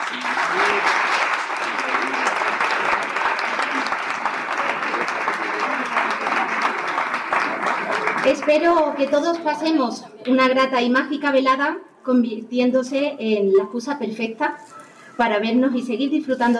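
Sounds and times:
audience applause: 0:00.0 - 0:09.2
speech: 0:08.4 - 0:16.5.

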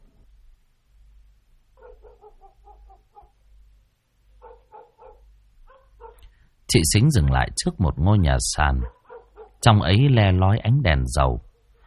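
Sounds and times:
dogs barking: 0:01.8 - 0:03.4, 0:04.4 - 0:06.3, 0:08.8 - 0:09.6
speech: 0:06.7 - 0:09.0, 0:09.6 - 0:11.5.

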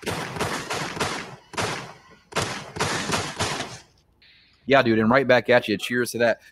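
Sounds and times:
gunshot sound effects: 0:00.0 - 0:03.9
speech: 0:04.7 - 0:06.4.

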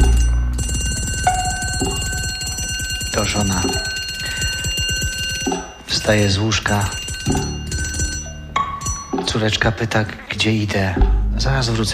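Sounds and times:
telephone ringing with rapid buzzing electronic trill: 0:00.0 - 0:09.8
speech: 0:06.1 - 0:07.5, 0:09.4 - 0:11.9.

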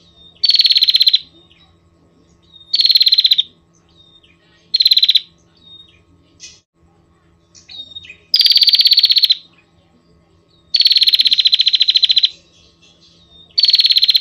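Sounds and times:
Prinia rattling trills: 0:00.0 - 0:06.7, 0:07.3 - 0:14.1.

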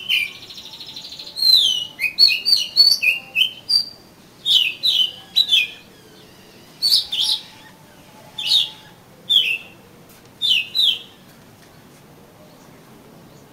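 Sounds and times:
Oriental magpie-robin song of mixed whistles, chirps and short slurs: 0:00.0 - 0:09.8, 0:10.4 - 0:11.2.

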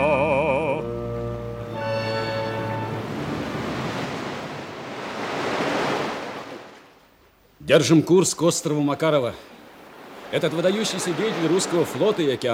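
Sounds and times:
sustained wavering musical tones: 0:00.0 - 0:03.3
wind: 0:01.1 - 0:12.5
ocean surf: 0:01.6 - 0:07.2, 0:08.7 - 0:12.5
speech: 0:07.7 - 0:09.5, 0:10.3 - 0:12.5.

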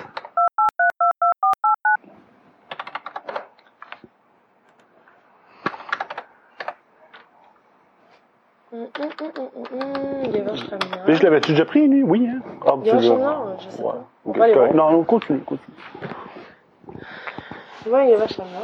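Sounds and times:
two-tone telephone keypad beeps: 0:00.4 - 0:02.0
speech: 0:08.8 - 0:16.1, 0:17.8 - 0:18.6.

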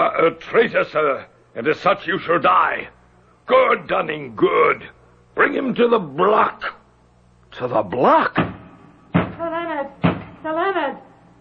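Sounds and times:
speech: 0:00.0 - 0:06.8, 0:07.5 - 0:08.5, 0:09.4 - 0:11.1
knocking on a door: 0:08.4 - 0:09.4, 0:10.0 - 0:10.4.

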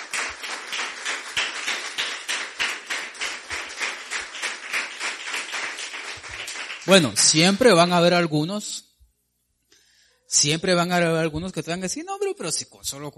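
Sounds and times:
church congregation clapping in praise during a sermon: 0:00.0 - 0:07.7
speech: 0:06.9 - 0:08.8, 0:10.4 - 0:13.1.

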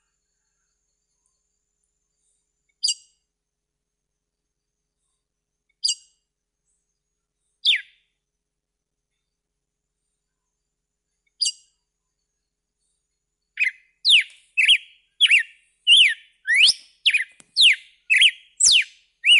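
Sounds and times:
red-cowled cardinal whistled song: 0:07.6 - 0:08.0, 0:13.6 - 0:19.3.

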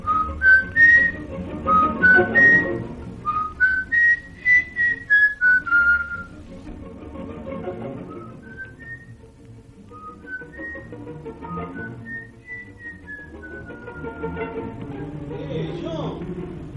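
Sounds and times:
whistle playing a quick tune of clear high notes: 0:00.0 - 0:06.4, 0:08.0 - 0:09.2, 0:10.0 - 0:14.5.

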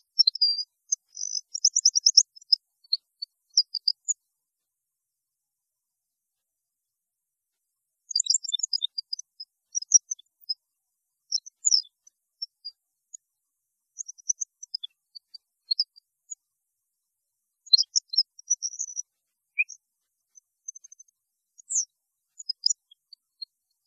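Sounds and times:
European goldfinch song: 0:00.0 - 0:04.2, 0:08.1 - 0:10.6, 0:11.2 - 0:13.2, 0:14.0 - 0:16.4, 0:17.6 - 0:23.8.

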